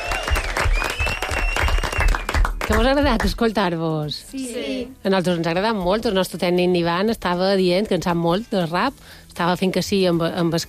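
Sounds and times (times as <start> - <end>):
audience applause: 0.0 - 2.8
speech: 2.7 - 10.6.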